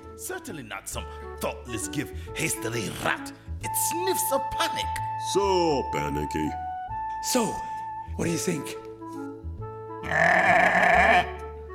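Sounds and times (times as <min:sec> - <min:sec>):
speech: 0:00.2 - 0:06.6, 0:07.2 - 0:09.2, 0:10.1 - 0:11.3
lamb bleating: 0:10.0 - 0:11.4.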